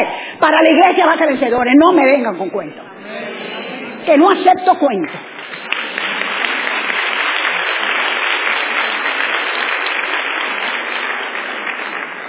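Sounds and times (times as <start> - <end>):
speech: 0.4 - 3.2, 4.0 - 5.3
audience applauding: 5.1 - 12.2.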